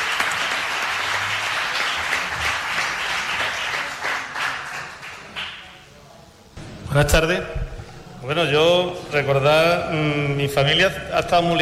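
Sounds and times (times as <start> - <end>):
audience applause: 0.0 - 5.8
speech: 7.0 - 7.6, 8.2 - 11.5.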